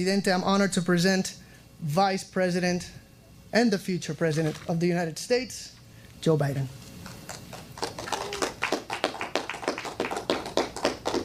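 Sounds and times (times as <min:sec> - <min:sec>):
speech: 0:00.0 - 0:06.8
sparse applause in a recorded clip: 0:07.8 - 0:11.2.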